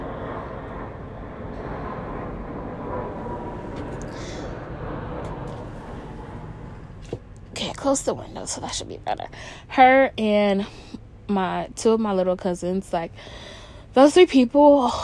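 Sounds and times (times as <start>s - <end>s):
airplane flying overhead: 0.0s - 15.0s
speech: 7.8s - 15.0s.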